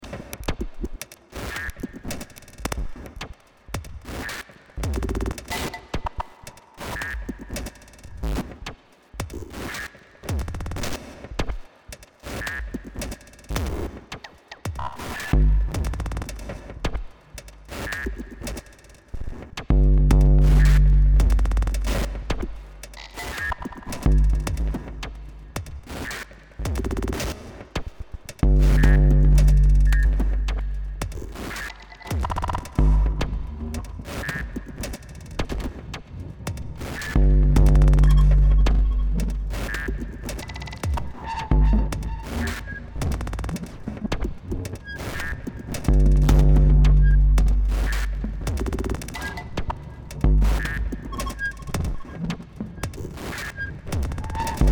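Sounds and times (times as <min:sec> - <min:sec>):
drum loop: 0:14.7 - 0:18.9, 0:19.6 - 0:35.8, 0:36.4 - 0:44.4, 0:45.2 - 0:53.2, 0:54.0 - 0:54.7.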